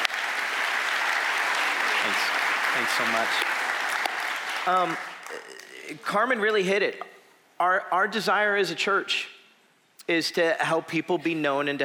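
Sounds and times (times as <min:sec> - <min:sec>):
audience applause: 0:00.0 - 0:06.0
speech: 0:02.0 - 0:03.6, 0:04.6 - 0:09.3, 0:10.1 - 0:11.8.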